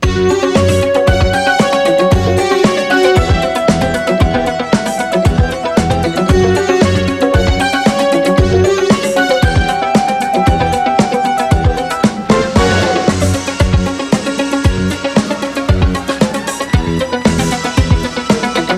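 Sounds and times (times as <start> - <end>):
music: 0.0 - 18.7.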